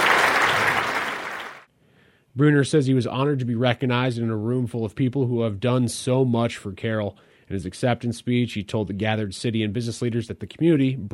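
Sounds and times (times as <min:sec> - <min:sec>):
audience applause: 0:00.0 - 0:01.7
speech: 0:02.4 - 0:11.1.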